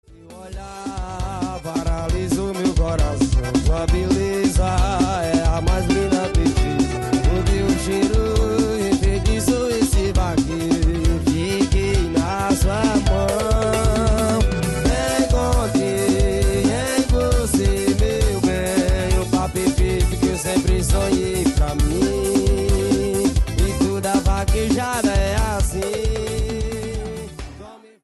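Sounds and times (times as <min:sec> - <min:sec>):
forró music: 0:00.1 - 0:27.8.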